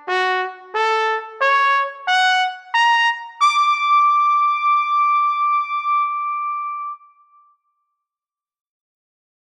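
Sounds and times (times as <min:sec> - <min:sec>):
trumpet: 0:00.0 - 0:07.1.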